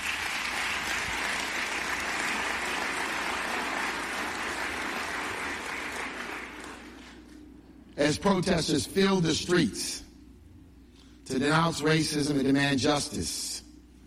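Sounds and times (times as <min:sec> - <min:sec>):
crowd applauding: 0:00.0 - 0:07.2
speech: 0:08.0 - 0:10.0, 0:11.3 - 0:13.6.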